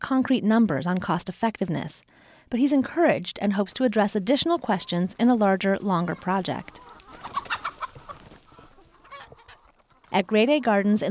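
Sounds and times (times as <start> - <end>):
speech: 0.1 - 6.8, 10.1 - 11.0
egg-laying hens clucking in the fields: 3.5 - 11.0.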